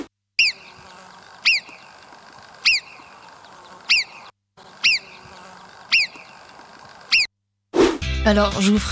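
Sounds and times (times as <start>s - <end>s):
fly buzzing: 0.0s - 7.3s
sharp high chirping calls: 0.4s - 7.3s
speech: 8.2s - 8.9s.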